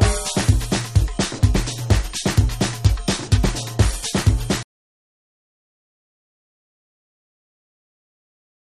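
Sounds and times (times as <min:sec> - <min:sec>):
tribal music mix: 0:00.0 - 0:04.6.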